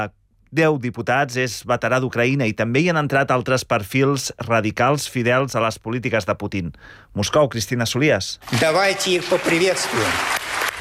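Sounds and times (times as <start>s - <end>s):
speech: 0.0s - 10.4s
long ovation in the Russian State Duma for war veterans: 8.4s - 10.7s.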